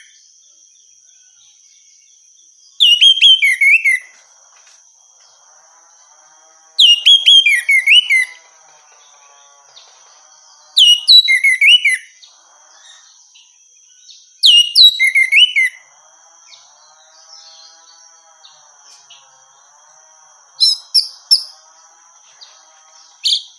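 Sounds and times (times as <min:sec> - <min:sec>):
orange-headed thrush song: 0:02.8 - 0:13.6, 0:14.4 - 0:23.5.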